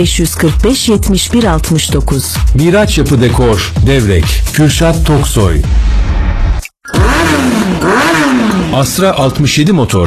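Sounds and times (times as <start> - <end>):
speech: 0.0 - 6.2, 8.7 - 10.0
Aurora motorcycle engine revving: 5.1 - 9.3.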